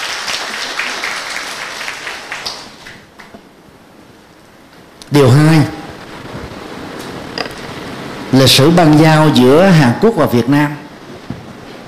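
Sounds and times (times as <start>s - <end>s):
applause: 0.0s - 3.4s
speech: 5.1s - 5.7s, 8.4s - 10.8s.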